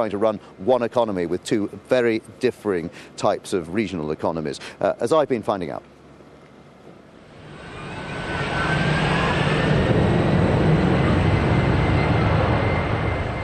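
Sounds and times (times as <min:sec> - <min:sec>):
speech: 0:00.0 - 0:05.9
passenger jets taking off at Frankfurt Airport: 0:07.1 - 0:13.4.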